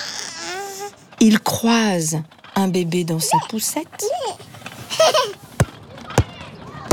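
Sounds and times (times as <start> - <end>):
speech: 1.3 - 5.4
ball bouncing: 5.6 - 6.9.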